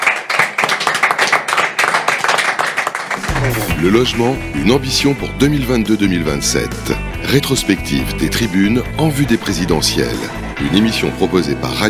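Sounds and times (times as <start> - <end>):
audience applause: 0.0 - 4.1
speech: 3.4 - 11.8.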